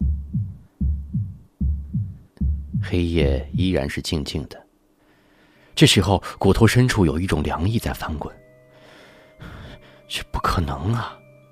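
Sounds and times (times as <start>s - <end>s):
heartbeat: 0.0s - 3.7s
speech: 2.9s - 4.6s, 5.8s - 8.4s, 10.1s - 11.2s.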